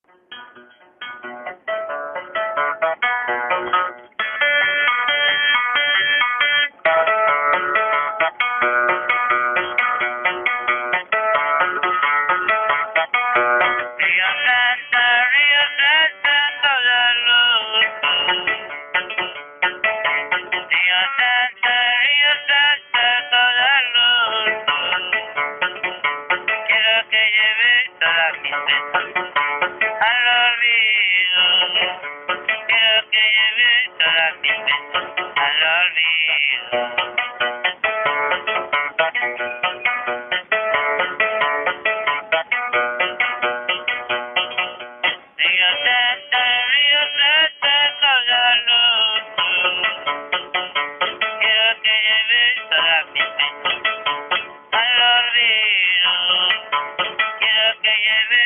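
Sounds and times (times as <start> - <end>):
guitarist playing guitar: 0.1 - 58.4.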